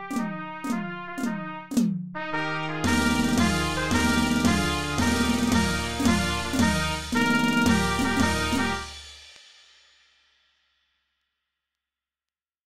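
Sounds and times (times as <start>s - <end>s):
fanfare in B flat: 0.0s - 9.1s.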